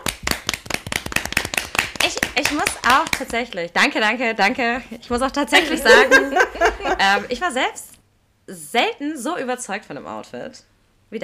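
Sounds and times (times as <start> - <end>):
short applause, hand clapping: 0.0 - 3.6
speech: 2.4 - 7.9, 8.5 - 11.2
laughter: 5.5 - 7.4.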